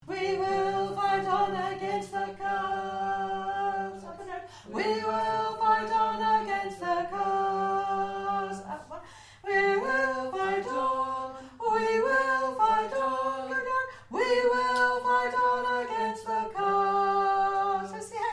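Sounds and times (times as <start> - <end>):
tenor singing: 0.0 - 18.3.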